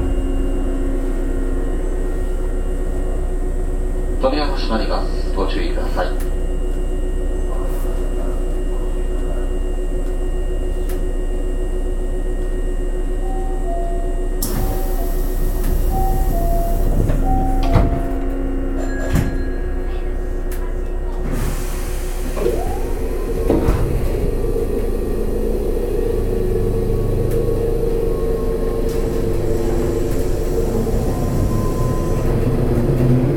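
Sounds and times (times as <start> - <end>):
Hankyu 7000 series local train on the Kobe Line rumbling: 0.0 - 11.1, 12.0 - 33.3
clanks and thuds: 16.9 - 19.6, 23.3 - 24.4.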